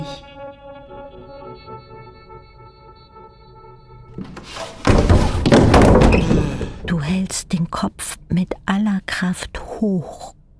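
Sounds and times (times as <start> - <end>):
hands hammering against the floor: 4.2 - 6.9
speech: 7.1 - 10.4.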